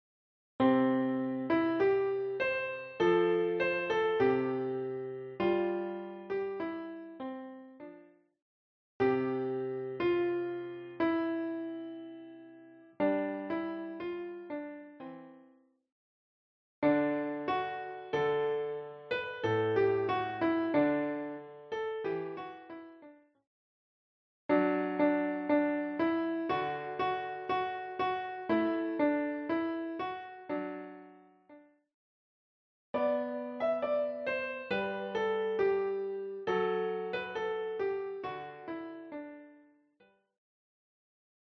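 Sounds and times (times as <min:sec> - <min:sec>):
children's songs on piano: 0:00.6 - 0:08.1, 0:09.0 - 0:15.4, 0:16.8 - 0:23.1, 0:24.5 - 0:31.5, 0:33.0 - 0:39.7.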